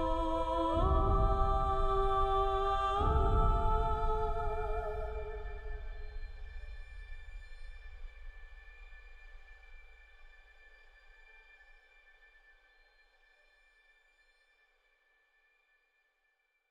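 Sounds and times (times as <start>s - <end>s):
ambience: 0.0s - 11.4s.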